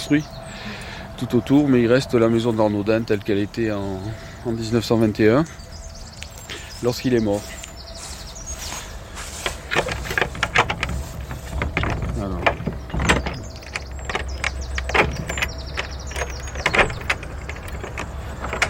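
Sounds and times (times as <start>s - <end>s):
speech: 0.1s - 0.4s, 1.2s - 5.6s, 6.8s - 7.6s
old Gascon door lock clicking and rattling open: 9.4s - 18.6s.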